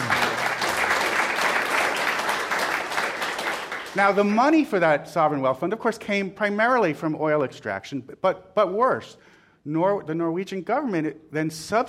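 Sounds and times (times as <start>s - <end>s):
audience cheering: 0.0s - 4.0s
speech: 4.0s - 11.8s.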